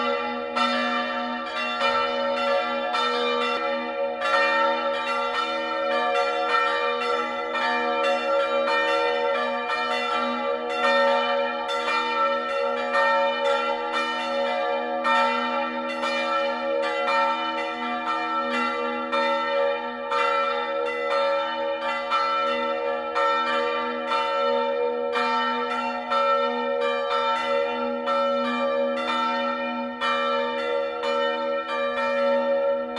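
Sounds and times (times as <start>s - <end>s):
bells: 0.0s - 32.9s.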